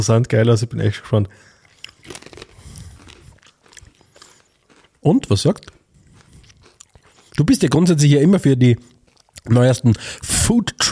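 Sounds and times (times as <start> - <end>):
speech: 0.0 - 2.3, 5.0 - 5.8, 7.4 - 10.9
crunching on potato chips: 1.6 - 8.0, 8.9 - 9.9.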